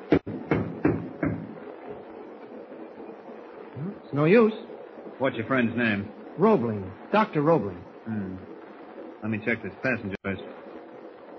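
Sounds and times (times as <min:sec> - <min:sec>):
knocking on a door: 0:00.1 - 0:01.6
speech: 0:04.2 - 0:08.5, 0:09.2 - 0:10.6.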